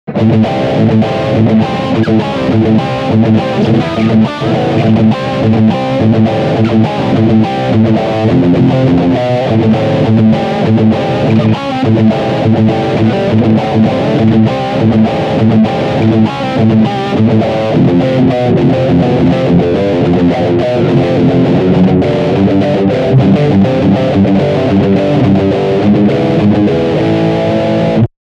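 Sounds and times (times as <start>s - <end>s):
electric guitar riff on humbucker pickup: 0.1s - 28.1s.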